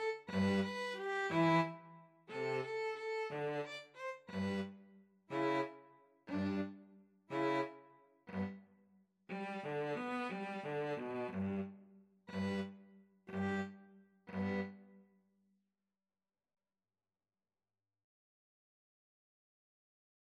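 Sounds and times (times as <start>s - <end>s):
two violins playing a serenade: 0.0s - 8.6s, 9.3s - 11.7s, 12.3s - 14.8s
cello playing a serenade: 0.0s - 8.7s, 9.3s - 15.0s.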